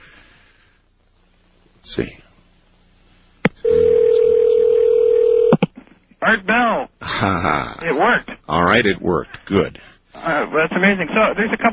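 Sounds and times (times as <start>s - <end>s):
speech: 1.9s - 2.2s, 6.3s - 11.7s
payphone dial tone: 3.6s - 5.6s.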